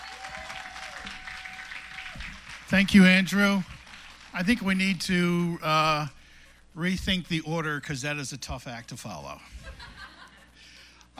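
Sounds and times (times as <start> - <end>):
applause: 0.0 - 5.0
speech: 2.7 - 3.7, 4.4 - 6.2, 6.8 - 9.9
laughter: 9.4 - 11.1.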